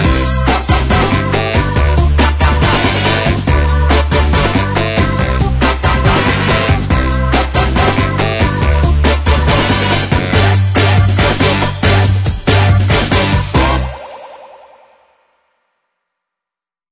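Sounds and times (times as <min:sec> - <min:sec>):
main theme music: 0:00.0 - 0:15.3.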